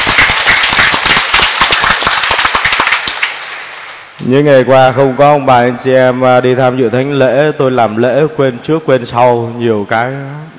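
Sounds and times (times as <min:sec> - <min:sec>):
large crowd applauding loudly: 0:00.0 - 0:03.6
speech: 0:04.3 - 0:10.5.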